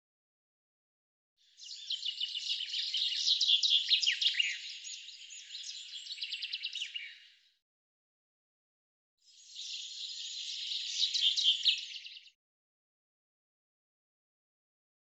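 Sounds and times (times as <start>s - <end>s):
bird chirping song: 1.4s - 7.6s, 9.2s - 12.4s.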